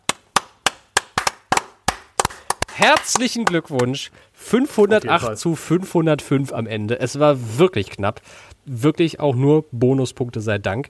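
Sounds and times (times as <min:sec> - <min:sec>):
hand clapping: 0:00.0 - 0:04.0
speech: 0:02.8 - 0:10.8.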